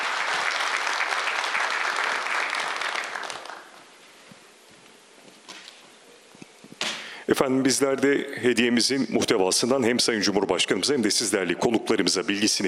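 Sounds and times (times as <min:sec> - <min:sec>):
audience applause at a formal ceremony: 0:00.0 - 0:03.8
speech: 0:07.3 - 0:12.6.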